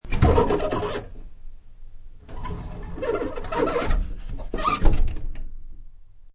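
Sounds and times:
folding closet door creaking open and closed: 0.0s - 1.2s, 2.2s - 5.6s.

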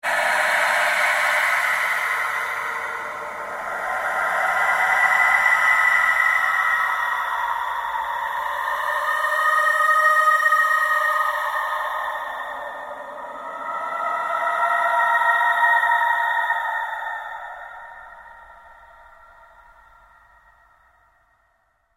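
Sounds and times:
ambient drone with slow sweep: 0.0s - 21.2s.

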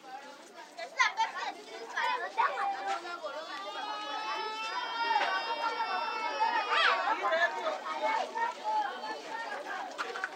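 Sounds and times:
small noisy crowd in Gabadalit Zaire: 0.0s - 10.3s
footsteps: 1.6s - 10.3s
children screaming: 3.4s - 8.0s.

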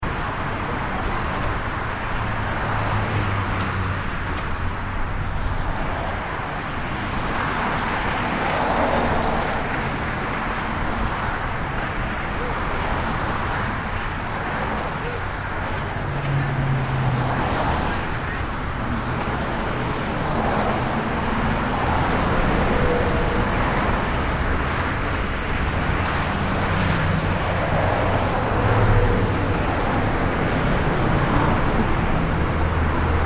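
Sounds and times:
fast freeway traffic of cars and trucks: 0.0s - 33.2s.

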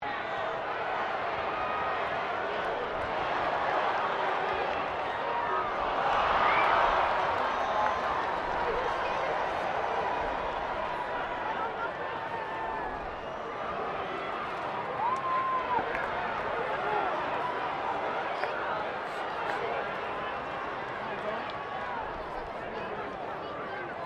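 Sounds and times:
crowd of 15K at a Rugby World Cup game: 0.0s - 24.0s.

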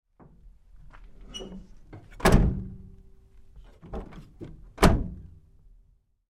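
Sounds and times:
GMC Savana truck second side door opening and closing lightly: 1.1s - 2.9s, 3.6s - 5.4s.

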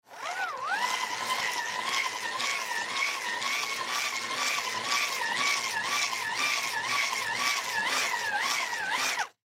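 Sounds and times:
manual hand crank flashlight turning fast: 0.2s - 9.4s.

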